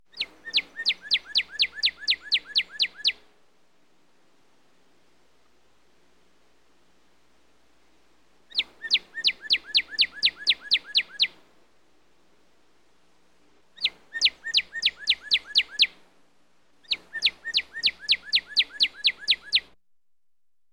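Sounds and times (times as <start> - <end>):
Northern cardinal singing: 0.1 - 3.2, 8.5 - 11.3, 13.8 - 15.9, 16.9 - 19.7.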